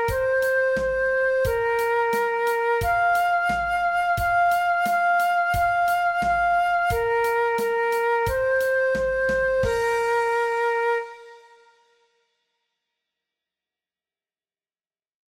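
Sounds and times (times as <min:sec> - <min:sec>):
adapted transverse flute alternate play-along track: 0:00.0 - 0:11.9.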